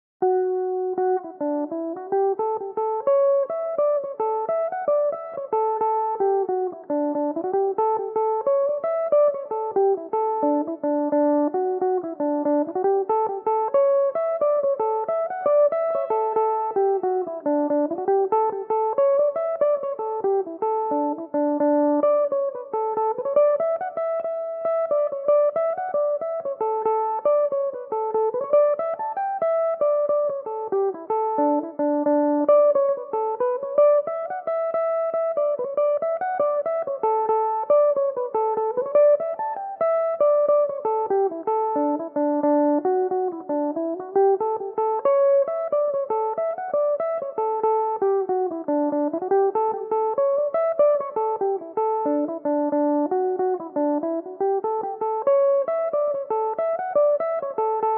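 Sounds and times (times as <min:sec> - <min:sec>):
jig in D major on Irish mandolin: 0:00.2 - 0:57.9.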